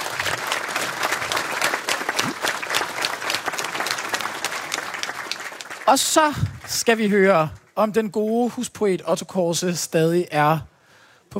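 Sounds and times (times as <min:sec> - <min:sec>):
crowd clapping for a guest on stage: 0:00.0 - 0:07.9
speech: 0:05.9 - 0:10.7.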